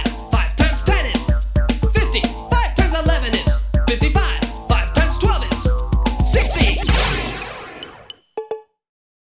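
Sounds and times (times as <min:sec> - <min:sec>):
rapping over a beat: 0:00.0 - 0:07.1.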